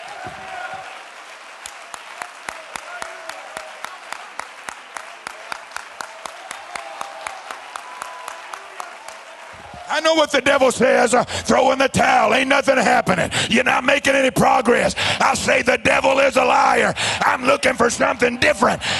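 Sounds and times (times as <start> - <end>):
audience clapping hands: 0.0 - 11.2
speech: 9.9 - 18.9.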